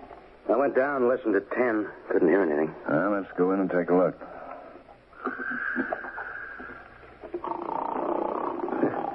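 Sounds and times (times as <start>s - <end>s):
speech: 0.5s - 4.3s
man snoring loudly: 7.4s - 9.1s.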